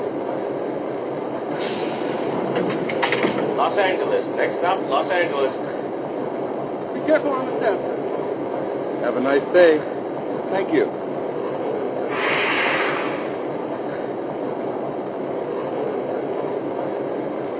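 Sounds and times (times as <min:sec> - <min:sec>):
F59PH diesel locomotive: 0:00.0 - 0:17.5.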